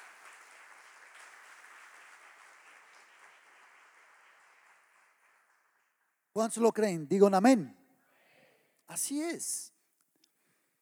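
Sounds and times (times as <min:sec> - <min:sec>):
faint audience applause: 0:00.0 - 0:07.6
speech: 0:06.4 - 0:07.8, 0:09.0 - 0:09.7.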